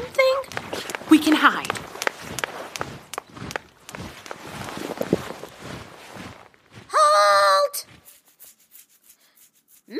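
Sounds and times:
marching footsteps of an army: 0.0s - 8.6s
speech: 1.2s - 1.8s.

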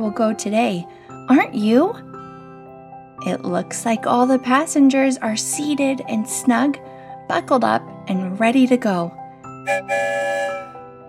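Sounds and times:
speech: 0.0s - 2.1s, 3.2s - 10.7s
train whistle as a train departs: 9.7s - 10.8s.

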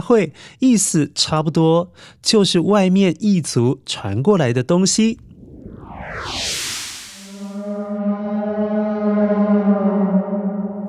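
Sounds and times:
speech: 0.1s - 5.3s
whale call: 7.4s - 10.8s.

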